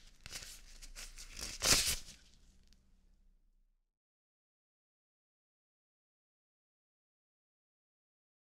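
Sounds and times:
gloves being put on: 0.0 - 2.8.

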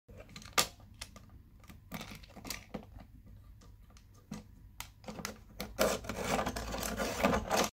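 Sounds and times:
pencil sharpener: 5.6 - 7.7.

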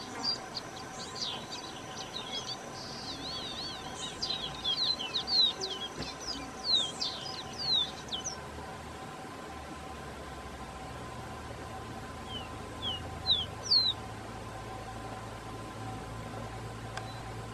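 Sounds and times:
copper seedeater calls: 0.0 - 8.5, 12.2 - 14.1
steady low hum: 0.0 - 17.5.

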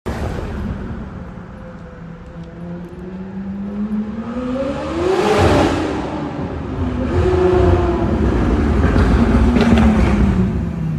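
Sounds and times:
McLaren car: 0.1 - 10.9.

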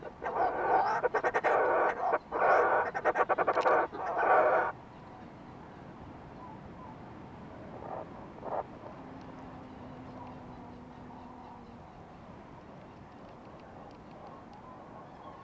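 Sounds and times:
fulmar prion rattling calls: 0.0 - 4.7.

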